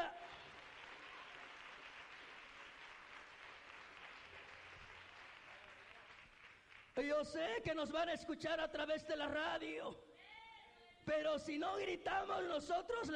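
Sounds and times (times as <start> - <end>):
audience applauding: 0.0 - 7.0
speech: 7.0 - 10.1, 11.1 - 13.1.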